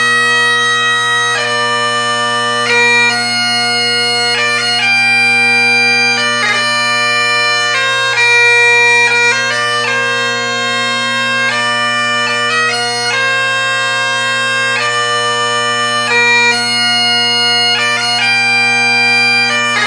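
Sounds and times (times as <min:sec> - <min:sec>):
bagpipes playing: 0:00.0 - 0:19.8.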